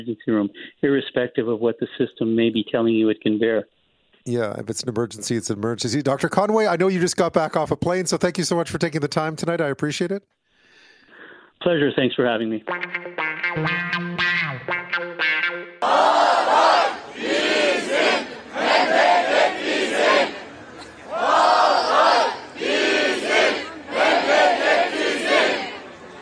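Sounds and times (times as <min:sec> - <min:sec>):
speech: 0:00.0 - 0:10.4, 0:11.6 - 0:14.1
large marching crowd chanting at a memorial march: 0:15.8 - 0:26.1.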